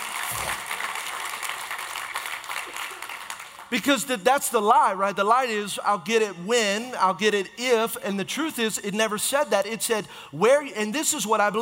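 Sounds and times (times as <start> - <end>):
audience clapping: 0.0 - 3.9
speech: 3.7 - 11.6.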